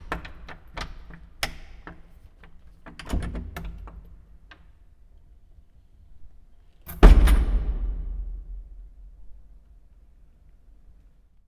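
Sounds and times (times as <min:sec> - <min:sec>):
door opening and closing: 0:06.9 - 0:09.2.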